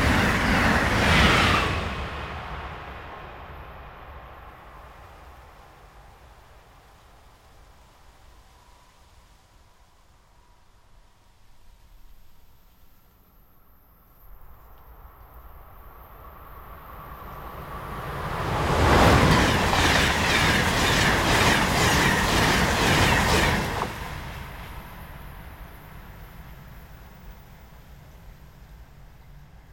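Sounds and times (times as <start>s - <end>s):
Acela train: 0.0s - 29.7s.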